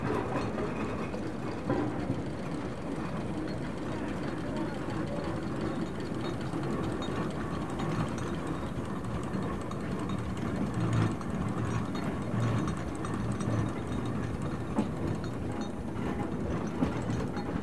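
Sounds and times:
steam traction engines manoeuvring: 0.2 - 17.6.

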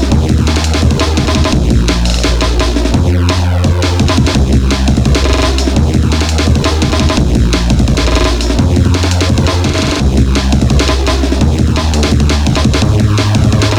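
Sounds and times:
glitchy drum and bass music: 0.0 - 13.7.

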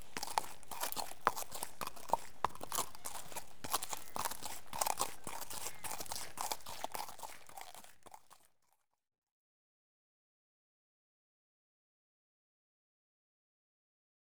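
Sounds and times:
horse hooves crunching on gravel: 0.0 - 8.5.

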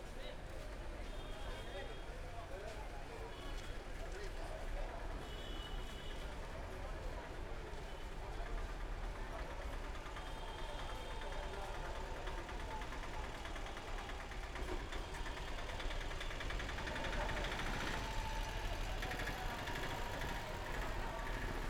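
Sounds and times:
crowd walla in Kerala India: 0.0 - 21.6
morning traffic in Kerala India: 10.3 - 21.6
auto rickshaws in Kerala India: 12.5 - 21.6.

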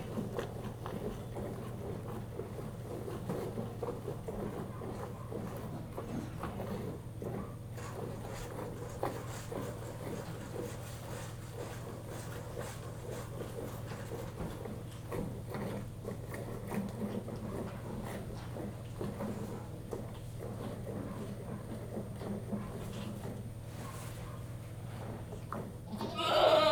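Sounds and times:
one goat being hand-milked: 0.0 - 26.7.

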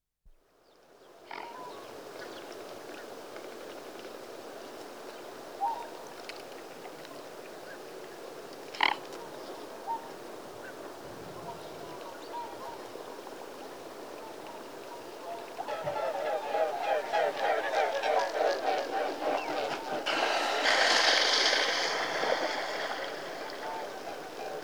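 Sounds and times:
mute swan Cygnus olor honking: 14.9 - 24.6.

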